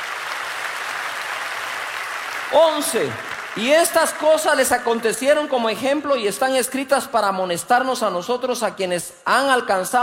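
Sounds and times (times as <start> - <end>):
audience applause: 0.0 - 5.3
speech: 2.5 - 10.0.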